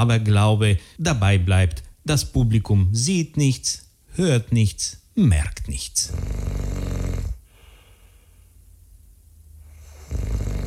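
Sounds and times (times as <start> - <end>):
speech: 0.0 - 6.5
person snoring asleep: 6.0 - 8.0, 9.6 - 10.6.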